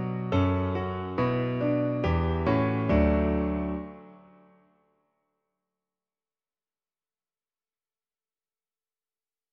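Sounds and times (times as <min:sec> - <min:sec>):
piano version: 0:00.0 - 0:04.6.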